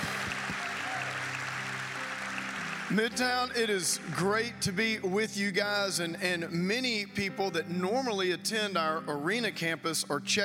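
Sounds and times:
audience applause at a church service celebrating a grand opening: 0.0 - 4.2
speech: 2.9 - 10.4.

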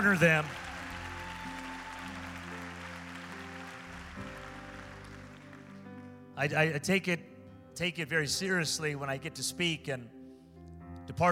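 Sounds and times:
speech: 0.0 - 0.6, 6.4 - 10.2, 11.1 - 11.3
audience clapping hands: 0.0 - 5.9
keyboard or organ chords: 0.0 - 11.3.

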